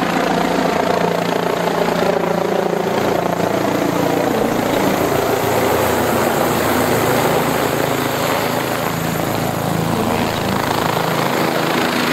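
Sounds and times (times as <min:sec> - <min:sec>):
helicopters landing: 0:00.0 - 0:12.1.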